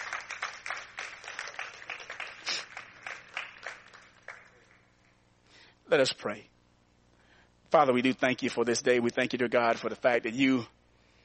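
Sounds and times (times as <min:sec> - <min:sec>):
audience clapping hands in praise: 0:00.0 - 0:05.2
speech: 0:05.9 - 0:06.6, 0:07.7 - 0:10.8.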